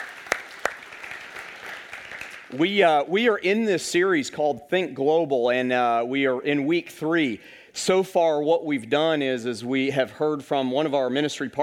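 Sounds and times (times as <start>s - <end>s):
church congregation applause welcoming guests: 0.0s - 2.6s
speech: 2.5s - 11.6s.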